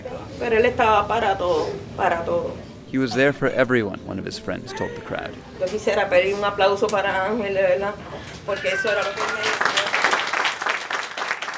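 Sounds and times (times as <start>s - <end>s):
speech: 0.4s - 9.8s
round of applause at funeral: 8.6s - 11.5s.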